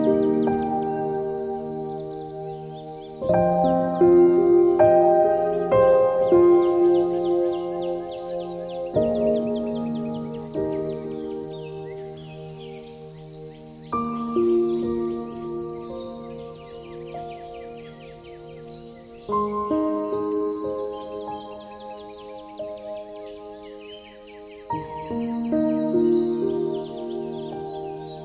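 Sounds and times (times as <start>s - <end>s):
birds chirping in high twittering notes: 0.0s - 28.2s.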